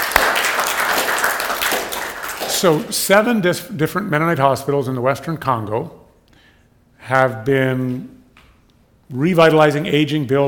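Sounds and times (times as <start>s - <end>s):
audience applause: 0.0s - 2.8s
speech: 2.6s - 6.0s, 7.1s - 8.2s, 9.1s - 10.4s.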